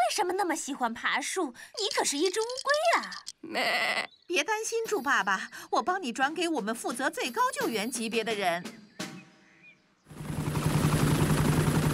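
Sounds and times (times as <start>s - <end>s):
speech: 0.2s - 8.8s
helicopter rotor: 10.1s - 11.9s.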